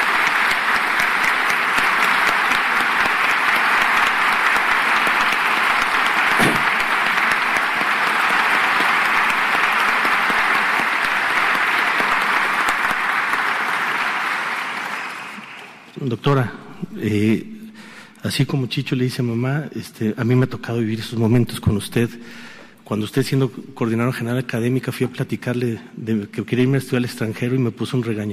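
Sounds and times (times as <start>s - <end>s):
sustained applause from a large audience: 0.0s - 16.0s
speech: 16.3s - 17.5s, 18.2s - 28.3s.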